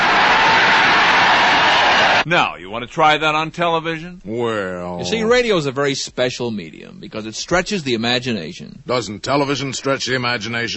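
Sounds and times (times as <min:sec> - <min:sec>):
25,000 extras cheering: 0:00.0 - 0:02.2
speech: 0:02.3 - 0:10.7.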